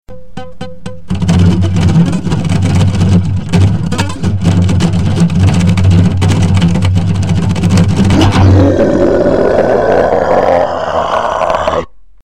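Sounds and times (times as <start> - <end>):
grindcore music: 0.1 - 11.8.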